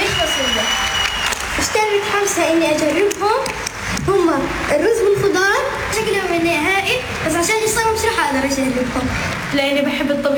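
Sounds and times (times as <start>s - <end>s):
audience applause welcoming a digital content creator at a Red Crescent event: 0.0s - 5.5s, 8.6s - 10.3s
speech: 1.6s - 10.3s.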